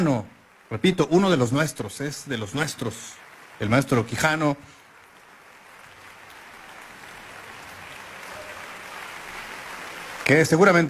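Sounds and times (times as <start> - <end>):
speech: 0.0 - 4.8, 10.3 - 10.8
concert hall audience applauding at a cultural center: 0.0 - 10.8.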